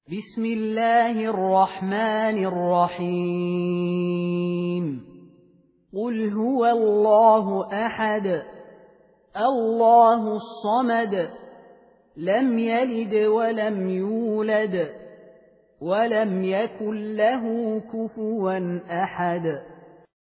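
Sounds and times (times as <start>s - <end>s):
person reciting a sura: 0.0s - 5.3s, 6.0s - 8.7s, 9.3s - 11.6s, 12.2s - 15.2s, 15.8s - 19.7s.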